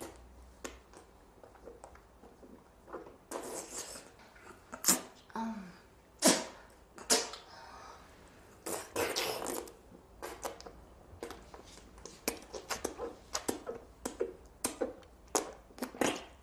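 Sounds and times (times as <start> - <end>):
married woman making oral sex sucking sounds: 2.9 - 5.4, 6.2 - 7.5, 8.5 - 16.4.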